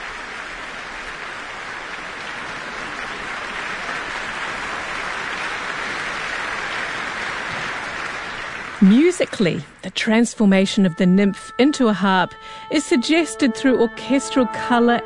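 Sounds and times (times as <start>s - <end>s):
concert hall applause: 0.0s - 10.2s
speech: 8.8s - 15.0s.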